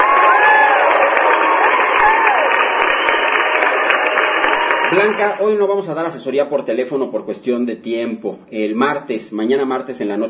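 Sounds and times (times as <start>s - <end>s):
applause: 0.0s - 5.4s
speech: 4.9s - 10.2s.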